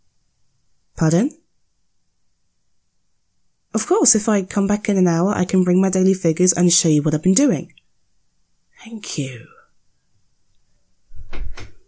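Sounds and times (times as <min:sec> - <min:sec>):
speech: 0:01.0 - 0:01.4, 0:03.8 - 0:07.8, 0:08.8 - 0:09.6
stuck locked door pulled hard against its lock: 0:11.1 - 0:11.8.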